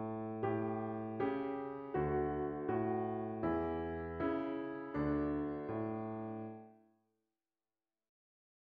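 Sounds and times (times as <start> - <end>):
slow piano piece: 0.0 - 6.8.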